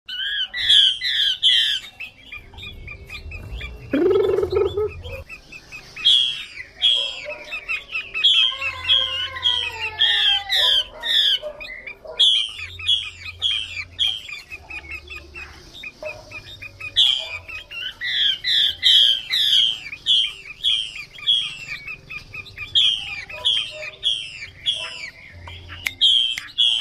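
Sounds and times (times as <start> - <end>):
Chinese hwamei singing: 0.1 - 26.8
low rumbling background: 2.4 - 5.4.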